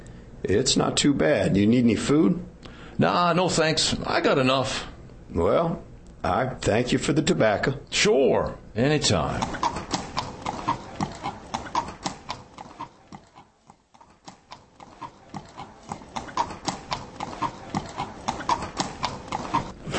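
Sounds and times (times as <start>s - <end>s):
speech: 0.5s - 9.7s
horse walking, hooves clip-clopping: 9.2s - 19.8s.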